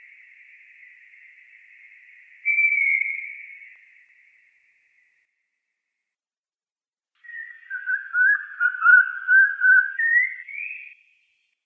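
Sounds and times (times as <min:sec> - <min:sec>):
Eurasian pygmy owl whistled series: 0:00.0 - 0:04.3, 0:07.2 - 0:11.0.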